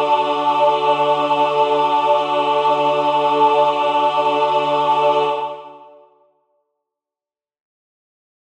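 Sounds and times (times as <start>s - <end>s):
full choir singing: 0.0s - 6.3s.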